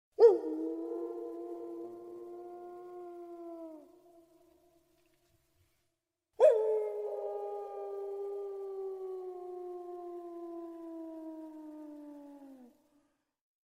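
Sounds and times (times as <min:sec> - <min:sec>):
wolf howling: 0:00.2 - 0:04.5, 0:06.4 - 0:12.9.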